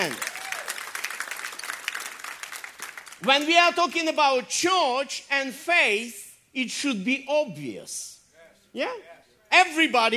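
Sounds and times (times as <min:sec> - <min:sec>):
audience clapping: 0:00.0 - 0:03.8
speech: 0:03.2 - 0:08.1, 0:08.7 - 0:10.1.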